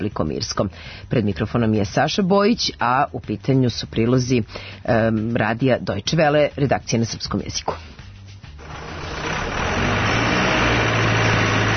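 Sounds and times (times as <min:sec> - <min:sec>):
speech: 0:00.0 - 0:08.0
forklift engine moving timber at a port: 0:08.5 - 0:11.7.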